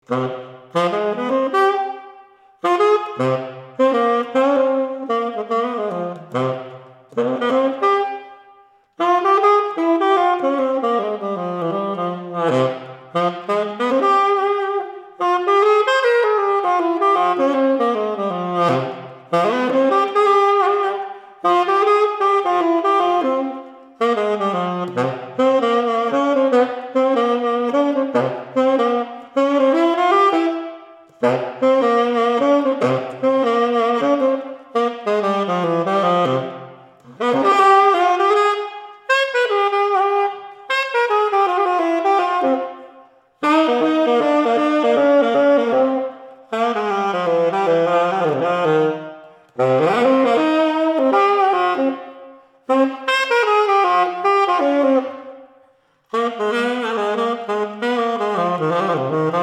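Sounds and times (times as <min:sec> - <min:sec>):
improvised music: 0:00.0 - 0:59.4.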